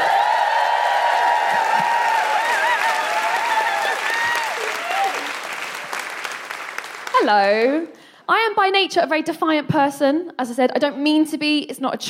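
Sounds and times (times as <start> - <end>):
whoops and shrill cheers: 0.0 - 5.5
crowd applause: 0.0 - 7.5
speech: 7.3 - 12.0.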